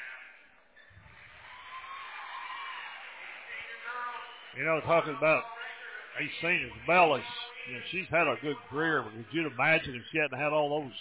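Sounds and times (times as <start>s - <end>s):
arena crowd applauding a senior player: 1.1s - 5.2s
speech: 4.5s - 5.5s, 6.2s - 10.9s.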